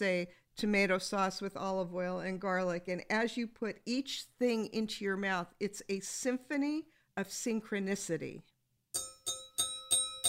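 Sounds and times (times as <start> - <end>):
speech: 0.0 - 9.1
bell ringing: 9.0 - 10.2.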